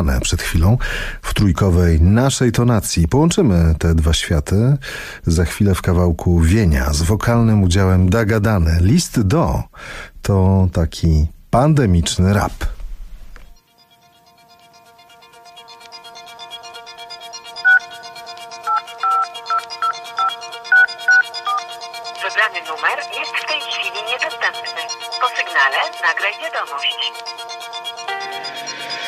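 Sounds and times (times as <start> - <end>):
speech: 0.0 - 12.8
phone call ringing before voicemail: 14.4 - 29.0
person leaving a voicemail message: 22.2 - 27.3.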